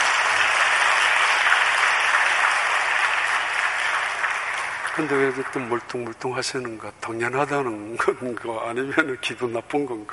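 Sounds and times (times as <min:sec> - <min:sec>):
audience applause: 0:00.0 - 0:06.2
speech: 0:05.0 - 0:10.1.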